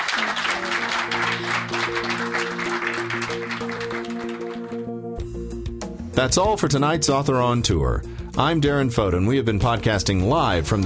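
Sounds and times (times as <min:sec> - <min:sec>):
audience applause: 0:00.0 - 0:05.0
speech: 0:06.2 - 0:10.8.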